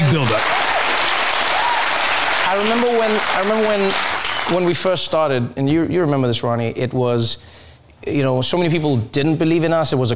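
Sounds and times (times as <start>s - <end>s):
big audience applause: 0.0s - 4.9s
speech: 0.1s - 0.6s, 2.6s - 10.1s.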